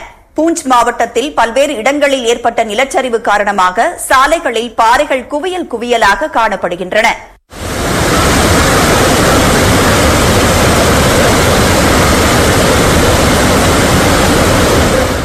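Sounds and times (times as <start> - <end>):
speech: 0.4 - 7.3
rushing floodwater in overflowing Mendhar river: 7.5 - 15.2.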